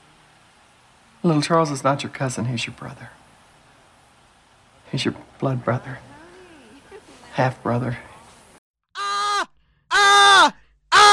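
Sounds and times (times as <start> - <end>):
speech: 1.2 - 3.2, 4.9 - 6.1, 7.4 - 8.1
people yelling: 5.8 - 7.1, 9.0 - 11.1.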